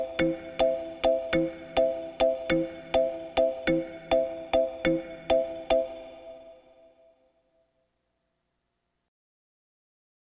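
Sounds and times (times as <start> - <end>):
Korg EK-50 L keyboard style music: 0.0 - 7.2.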